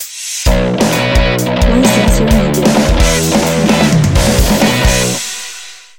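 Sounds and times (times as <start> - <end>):
rough bass: 0.5 - 5.2.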